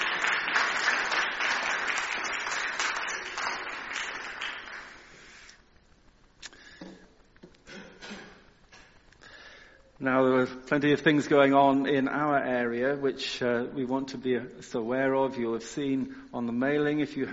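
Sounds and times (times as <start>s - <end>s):
audience applause: 0.0s - 5.4s
speech: 10.0s - 17.3s.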